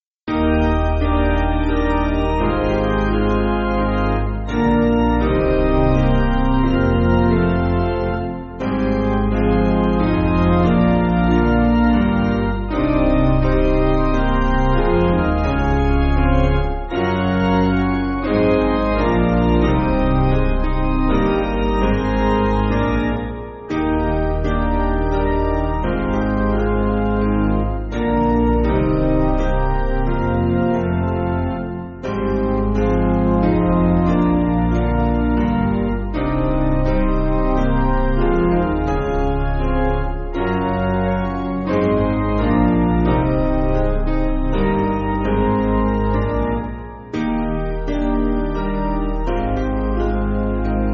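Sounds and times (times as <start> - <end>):
piano: 0.0 - 50.9.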